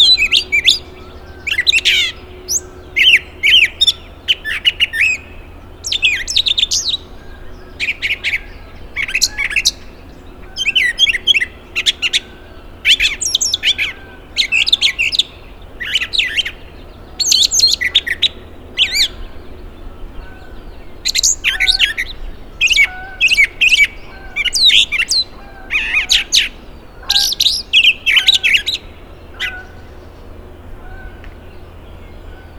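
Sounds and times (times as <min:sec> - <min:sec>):
brown thrasher song: 0:00.0 - 0:32.5.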